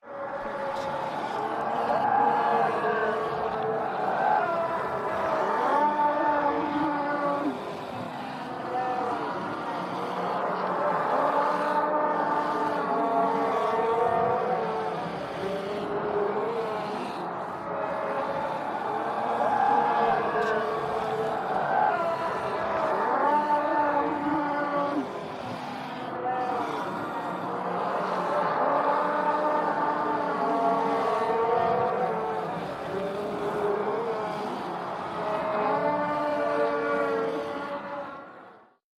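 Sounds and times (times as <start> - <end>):
zombie: 0.0 - 38.8.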